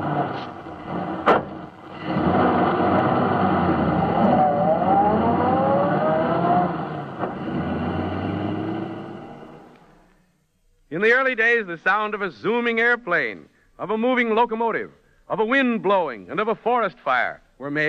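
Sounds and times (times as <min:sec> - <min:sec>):
moving automobile: 0:00.0 - 0:09.8
speech: 0:11.0 - 0:17.8.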